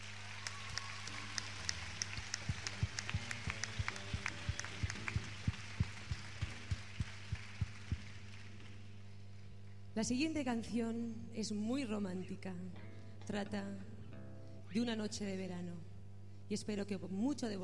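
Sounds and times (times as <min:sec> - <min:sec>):
audience applause: 0:00.0 - 0:09.0
constant low hum: 0:00.0 - 0:17.6
speech: 0:10.0 - 0:13.9, 0:14.8 - 0:15.9, 0:16.5 - 0:17.6.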